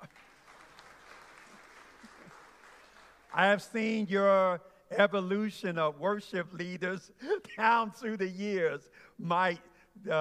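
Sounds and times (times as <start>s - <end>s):
audience clapping: 0.0s - 4.1s
speech: 3.4s - 10.1s.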